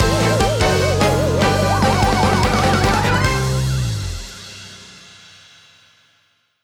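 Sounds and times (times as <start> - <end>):
win jingle: 0.0 - 4.4.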